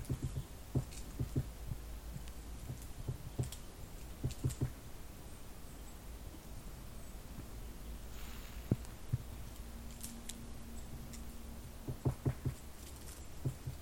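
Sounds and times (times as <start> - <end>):
woodpecker knocking heard from within the tree: 0.0 - 4.8, 10.9 - 13.8
faint hum: 0.0 - 13.8.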